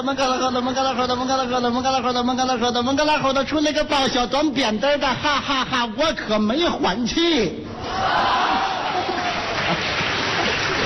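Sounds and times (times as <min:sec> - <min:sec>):
speech: 0:00.0 - 0:08.7
audience applause and cheering: 0:07.9 - 0:10.8.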